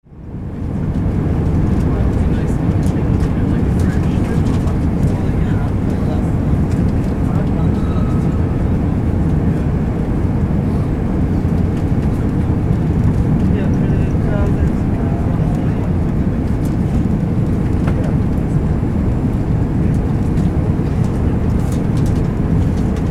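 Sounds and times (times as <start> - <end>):
airplane cabin interior during constant flight: 0.0 - 23.1.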